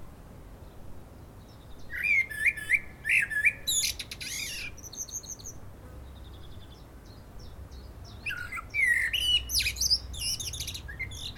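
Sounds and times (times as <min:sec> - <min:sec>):
common blackbird Turdus merula singing: 0:01.4 - 0:11.3.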